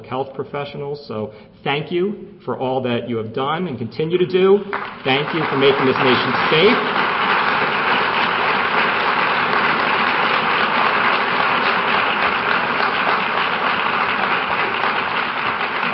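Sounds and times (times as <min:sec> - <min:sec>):
speech: 0:00.0 - 0:07.1
crowd applause: 0:04.7 - 0:15.9.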